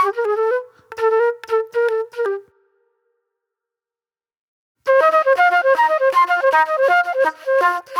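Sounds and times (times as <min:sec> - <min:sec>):
soul flute music: 0:00.0 - 0:02.8, 0:04.9 - 0:07.9.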